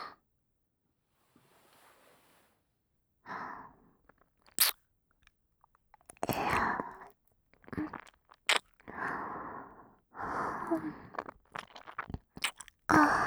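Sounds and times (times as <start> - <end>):
deep ear licking and sucking: 4.5 - 4.7, 6.1 - 9.0, 10.6 - 13.1.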